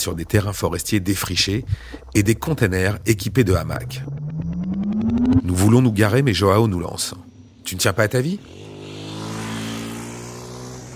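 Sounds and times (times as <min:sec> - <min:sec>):
speech: 0:00.0 - 0:04.2, 0:05.0 - 0:08.7
motorcycle passing by: 0:03.7 - 0:10.9.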